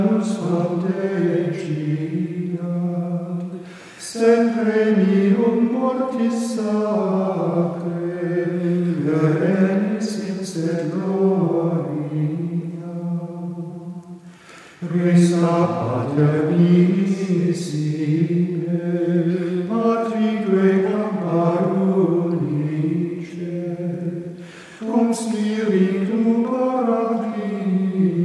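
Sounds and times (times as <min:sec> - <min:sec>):
Gregorian chant: 0:00.0 - 0:28.2.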